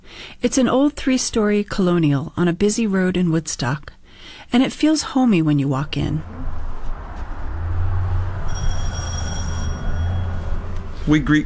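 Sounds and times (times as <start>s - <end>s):
speech: 0.4s - 6.6s, 11.1s - 11.4s
loud entry bell ringing at a funeral home: 8.4s - 11.0s.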